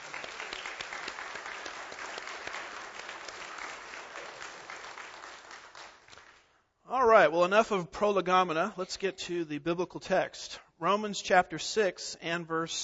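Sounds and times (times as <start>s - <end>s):
audience applause: 0.0s - 6.4s
speech: 6.9s - 12.8s.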